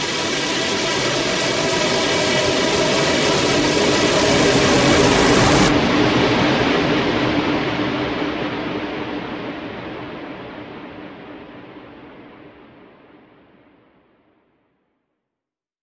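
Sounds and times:
tense swarm: 0.2 - 9.9.

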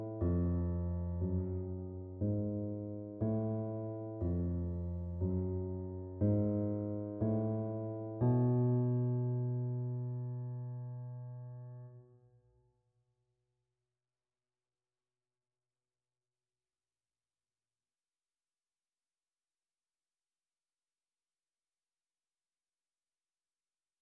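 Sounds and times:
piano piece: 0.0 - 12.1.

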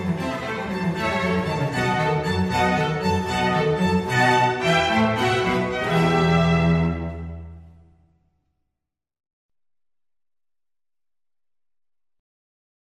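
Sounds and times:
baroque concerto for four violins, strings and basso continuo: 0.0 - 8.0.

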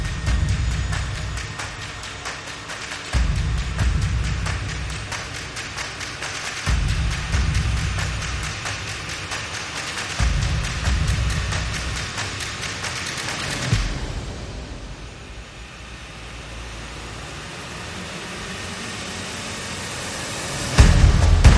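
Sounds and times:
bass: 0.0 - 1.6, 3.2 - 5.1, 6.7 - 8.7, 10.2 - 12.2, 20.7 - 21.5
drums: 0.0 - 21.5.

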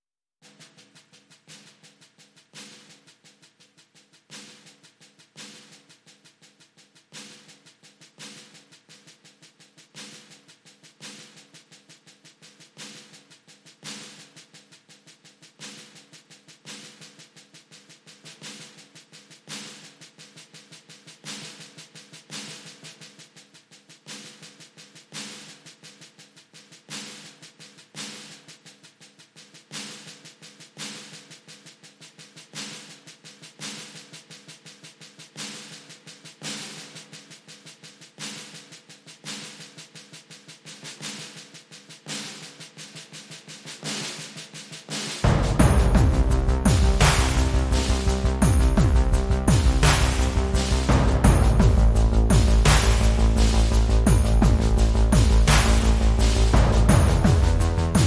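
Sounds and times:
drums: 0.0 - 58.0
bass: 45.2 - 58.0.

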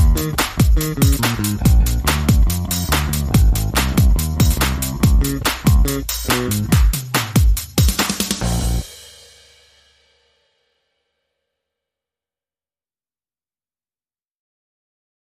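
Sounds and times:
bass: 0.0 - 8.9
drums: 0.0 - 10.7.

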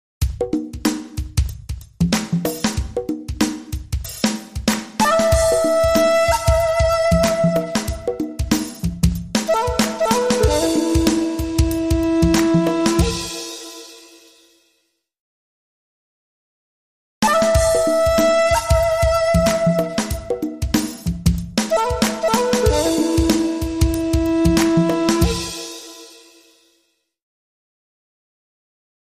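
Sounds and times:
jazz tech music: 0.2 - 14.0, 17.2 - 26.2.

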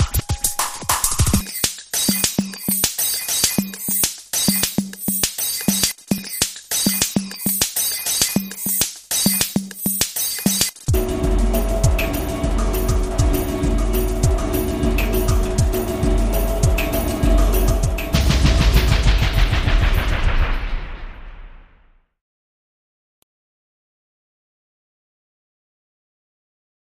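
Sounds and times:
drums playing: 0.0 - 21.2.

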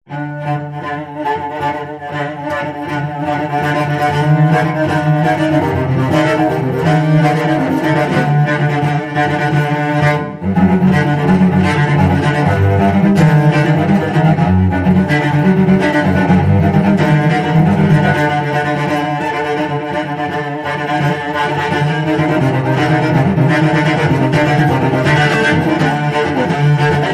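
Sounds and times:
cello danger excitement music: 0.1 - 27.1.

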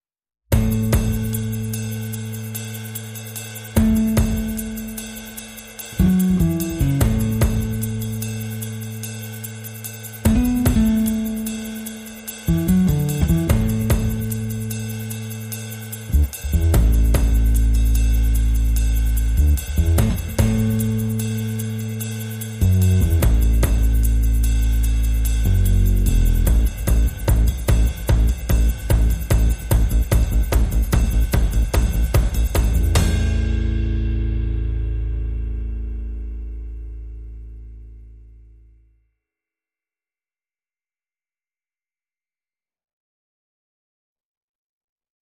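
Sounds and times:
drums: 0.5 - 1.9, 3.6 - 8.4, 10.2 - 15.3, 16.1 - 21.5, 22.6 - 35.8
bass: 0.5 - 39.0.

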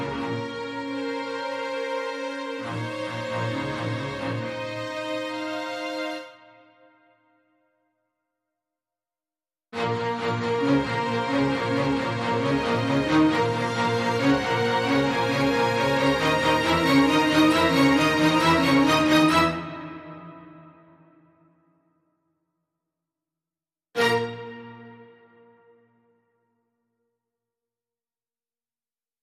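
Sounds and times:
strings: 0.0 - 6.9, 9.8 - 21.4, 24.0 - 25.8.

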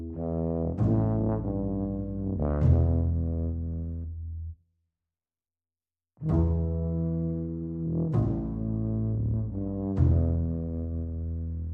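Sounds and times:
brass band music without guitar: 0.1 - 4.0, 6.3 - 11.6.

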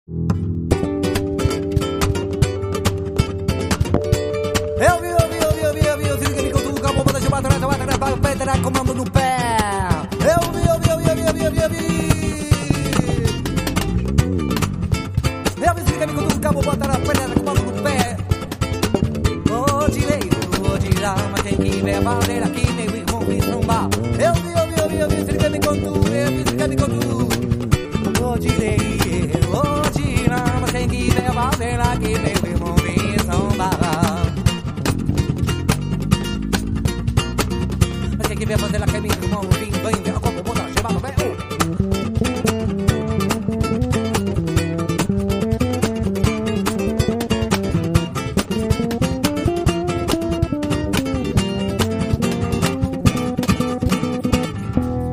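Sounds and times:
funk music: 0.1 - 55.1.

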